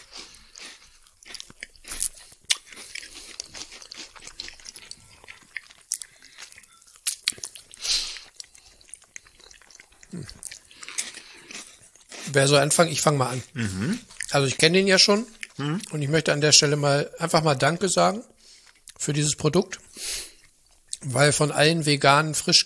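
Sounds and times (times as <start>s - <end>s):
crunchy biting and chewing of homemade chestnut bread: 0.0s - 15.6s
speech: 10.1s - 10.4s, 12.3s - 18.3s, 19.1s - 19.8s, 21.1s - 22.6s.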